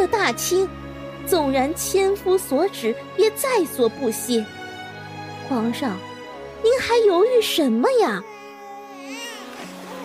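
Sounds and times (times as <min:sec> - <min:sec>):
speech: 0:00.3 - 0:04.6, 0:05.5 - 0:08.3
baby crying: 0:08.0 - 0:10.0.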